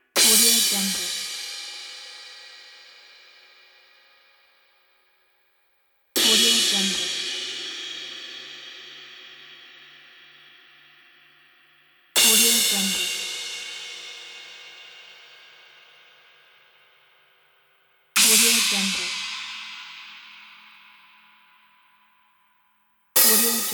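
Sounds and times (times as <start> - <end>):
cymbals: 0.2 - 3.6, 6.2 - 10.1, 12.2 - 15.6, 18.2 - 21.5, 23.2 - 23.7.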